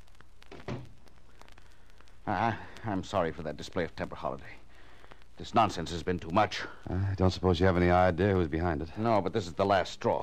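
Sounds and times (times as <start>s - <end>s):
faint steady hiss: 0.0s - 10.2s
door closing: 0.5s - 0.9s
speech: 2.3s - 4.6s, 5.4s - 10.2s.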